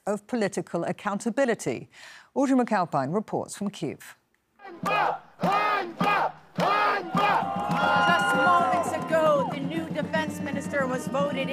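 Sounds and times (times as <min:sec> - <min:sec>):
speech: 0:00.0 - 0:04.2, 0:10.7 - 0:11.5
protesters shouting the word Einbar: 0:04.6 - 0:09.6.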